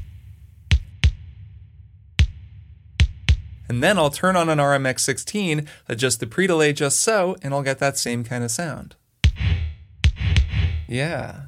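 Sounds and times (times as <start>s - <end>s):
SP1200-style kick drum sample: 0.0s - 3.7s, 9.2s - 10.9s
speech: 3.7s - 9.0s, 10.9s - 11.4s.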